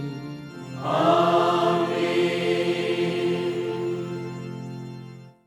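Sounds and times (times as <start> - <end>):
chanting: 0.8 - 4.6.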